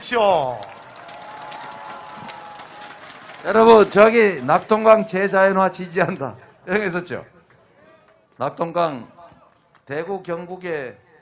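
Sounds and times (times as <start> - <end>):
crowd applause: 0.0 - 6.2
crowd cheering: 0.0 - 11.1
speech: 0.1 - 0.8, 3.4 - 7.3, 8.4 - 9.2, 9.9 - 11.0.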